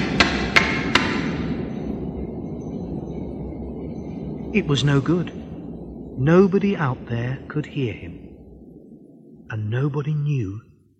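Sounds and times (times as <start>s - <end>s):
hard blows struck against a metal wall: 0.0s - 6.9s
steady low rumble: 0.0s - 10.9s
speech: 4.5s - 5.4s, 6.2s - 8.3s, 9.5s - 10.7s.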